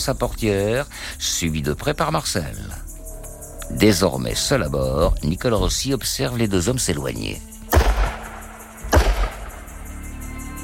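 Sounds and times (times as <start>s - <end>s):
speech: 0.0s - 2.9s, 3.7s - 7.5s
gunshots: 7.7s - 9.7s.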